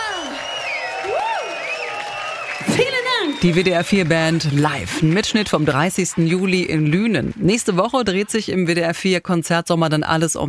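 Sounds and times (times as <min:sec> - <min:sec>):
high gliding whoops: 0:00.0 - 0:03.5
concert crowd cheering and clapping after a live band performance: 0:00.0 - 0:08.5
speech: 0:03.4 - 0:10.4.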